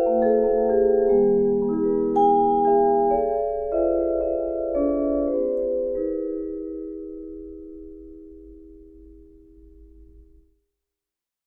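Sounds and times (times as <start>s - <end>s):
vibraphone: 0.0s - 8.2s.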